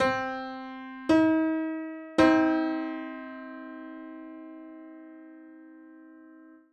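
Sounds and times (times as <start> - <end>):
piano in 7 equal divisions of the octave: 0.0 - 6.7.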